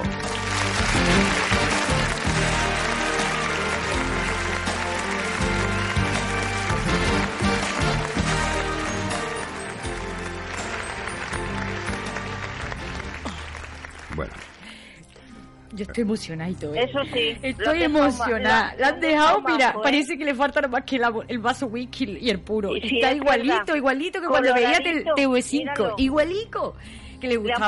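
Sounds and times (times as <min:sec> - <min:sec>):
audience applause: 0:00.0 - 0:15.0
speech: 0:16.0 - 0:27.6.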